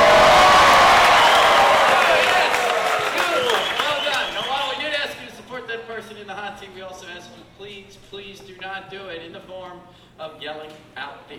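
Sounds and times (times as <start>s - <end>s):
audience cheering and applauding: 0.0s - 4.8s.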